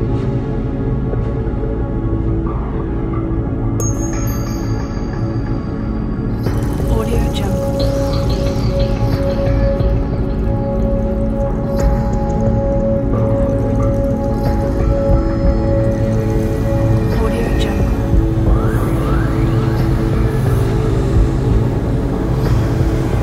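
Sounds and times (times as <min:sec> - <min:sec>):
ambient atmosphere soundscape: 0:00.0 - 0:23.2.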